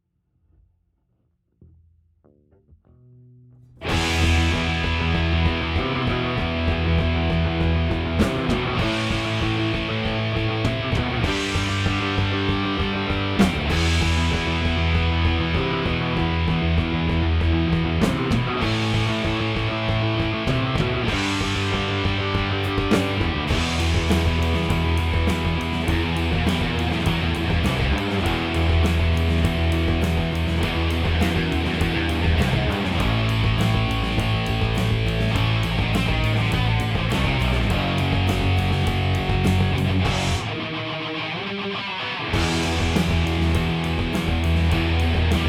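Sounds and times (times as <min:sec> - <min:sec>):
guitars: 0:02.8 - 0:45.4.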